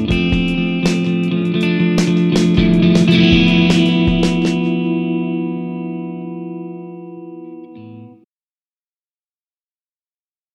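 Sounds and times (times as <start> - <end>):
Fender American Original 60 Jazzmaster electric guitar on both pickups: 0.0 - 8.2.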